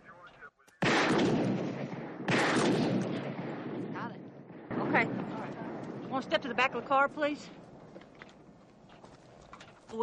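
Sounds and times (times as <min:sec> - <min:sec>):
booming gunshots at a police radio: 0:00.8 - 0:07.8
speech: 0:06.1 - 0:07.6.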